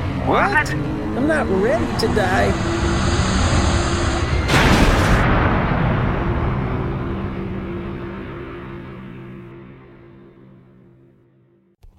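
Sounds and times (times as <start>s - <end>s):
spaceship rumbling roar with low engine hum: 0.0s - 9.5s
speech: 0.3s - 2.9s
spaceship crash-landing impact: 4.0s - 9.8s.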